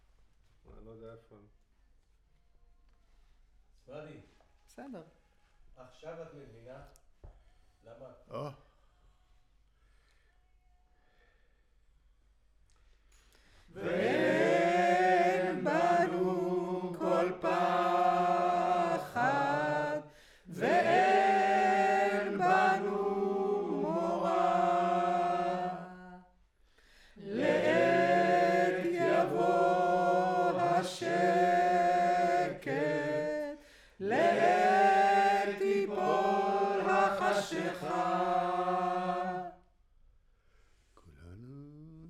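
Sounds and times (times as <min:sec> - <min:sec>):
choir singing: 0:13.7 - 0:26.4, 0:27.2 - 0:39.7.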